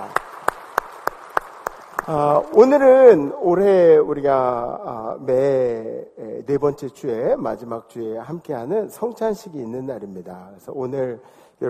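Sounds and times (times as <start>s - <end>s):
audience applause: 0.0s - 2.7s
speech: 2.1s - 11.6s.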